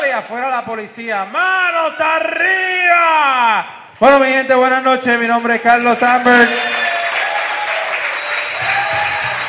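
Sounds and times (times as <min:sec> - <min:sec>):
speech: 0:00.2 - 0:06.8
audience applause: 0:05.9 - 0:09.4.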